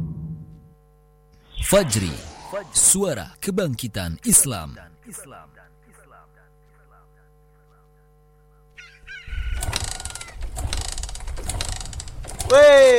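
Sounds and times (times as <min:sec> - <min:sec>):
speech: 0:01.6 - 0:05.7, 0:12.5 - 0:12.9
motorbike engine being warmed up: 0:09.6 - 0:12.9.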